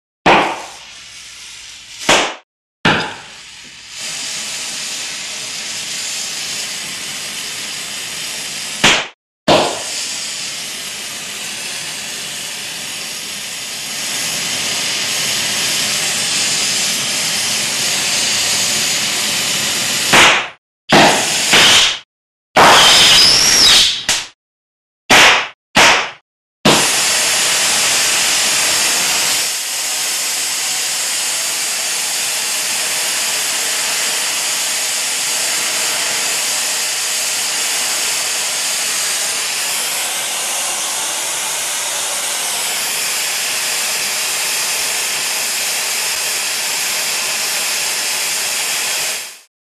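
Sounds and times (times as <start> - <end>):
loud acetylene torch pops: 0.3 - 0.9, 2.0 - 2.4, 8.8 - 9.9, 20.1 - 22.0, 22.6 - 24.4, 25.1 - 26.9
acetylene torch turning on and off: 0.5 - 2.4, 3.0 - 22.0, 22.6 - 24.0, 26.7 - 49.5.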